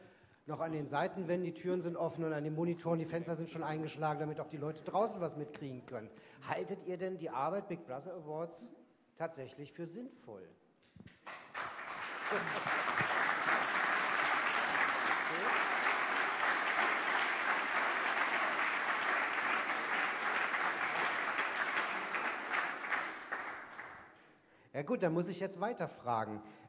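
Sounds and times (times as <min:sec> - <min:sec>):
speech: 0:00.5 - 0:11.4, 0:12.3 - 0:13.0, 0:24.8 - 0:26.6
audience applause in a packed hall: 0:11.2 - 0:24.1.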